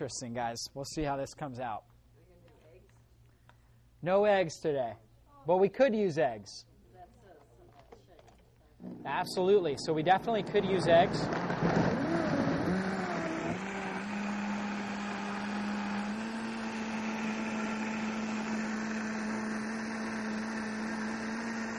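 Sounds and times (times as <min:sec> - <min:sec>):
speech: 0:00.0 - 0:01.9, 0:04.0 - 0:06.7, 0:08.8 - 0:11.6
blender blending a thyroid shake without eggs: 0:08.8 - 0:21.7.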